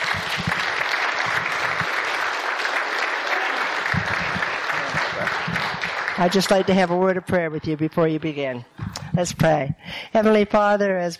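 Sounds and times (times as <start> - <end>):
audience applause welcoming two guests to the platform: 0.0 - 7.9
speech: 6.2 - 11.1.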